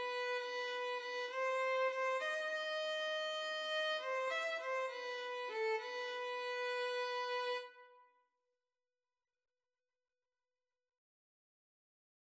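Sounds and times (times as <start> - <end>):
flute in karaoke music: 0.0 - 8.0
violin in karaoke music: 0.0 - 8.0.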